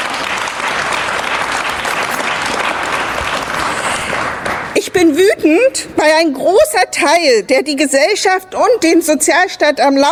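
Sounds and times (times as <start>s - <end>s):
audience applause at a speech to colleagues about the welfare state: 0.0s - 4.8s
speech: 5.0s - 10.1s.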